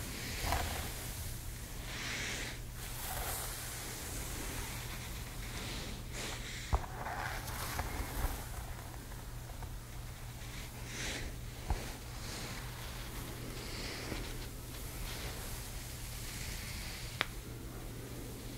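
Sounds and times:
hair brushing and rustling strokes: 0.0 - 17.3
steady low hum of a hair dryer or appliance: 0.0 - 18.5.

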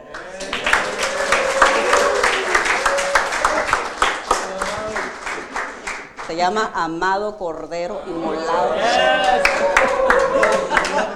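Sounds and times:
laughter: 0.0 - 6.3, 7.8 - 11.1
audience applause: 0.0 - 6.6, 8.1 - 11.1
speech: 6.4 - 11.1.

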